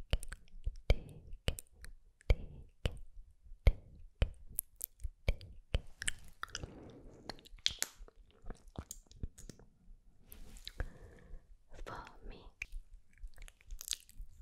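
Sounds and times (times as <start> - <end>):
wet mouth sounds clicks and smacks: 0.0 - 9.7, 10.4 - 11.1, 11.8 - 14.4
soft hissy whispered syllables: 11.7 - 12.8.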